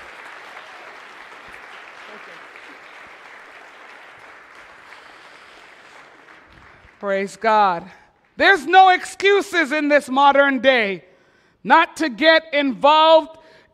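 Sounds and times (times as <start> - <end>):
audience applause: 0.0 - 7.1
speech: 7.0 - 13.4.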